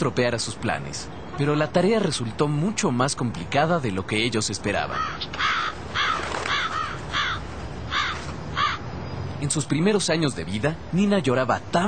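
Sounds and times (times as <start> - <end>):
speech: 0.0 - 5.7, 9.4 - 11.8
large birds cawing harshly: 4.8 - 8.9.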